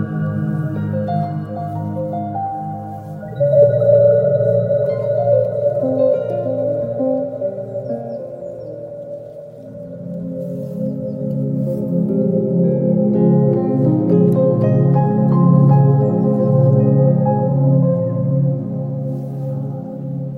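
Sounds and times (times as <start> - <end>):
piano music: 0.0 - 20.3.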